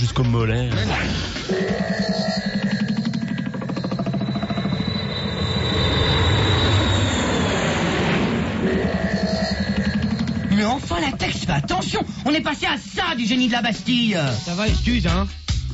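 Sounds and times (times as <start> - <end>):
speech: 0.0 - 2.4, 10.8 - 15.4
thin sustained high whine: 0.8 - 14.7
airplane in flight engine drone: 1.2 - 12.4.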